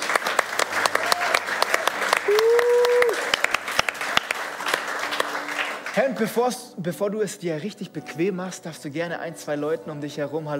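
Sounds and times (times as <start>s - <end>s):
audience applause: 0.0s - 6.4s
person whooping: 0.8s - 3.4s
speech: 6.0s - 10.5s.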